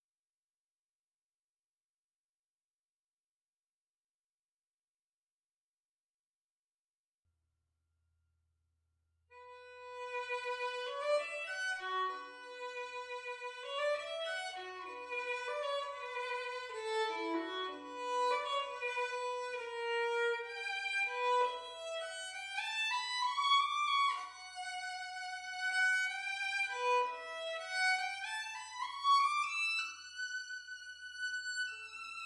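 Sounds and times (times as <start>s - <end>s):
violin: 9.4s - 32.2s.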